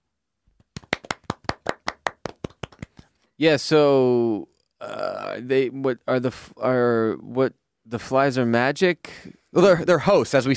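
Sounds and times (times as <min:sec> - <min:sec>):
clapping: 0:00.6 - 0:03.1
speech: 0:03.4 - 0:10.5.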